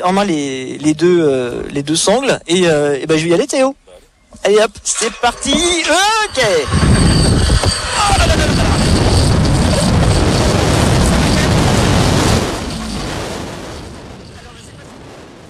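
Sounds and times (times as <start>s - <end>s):
speech: 0.0s - 3.8s, 4.4s - 7.2s, 8.0s - 8.6s
strong wind on zipline: 5.0s - 15.4s.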